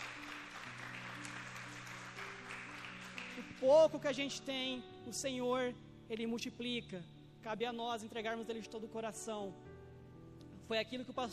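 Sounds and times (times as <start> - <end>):
audience applause: 0.0 - 3.7
speech: 3.4 - 9.7, 10.7 - 11.3.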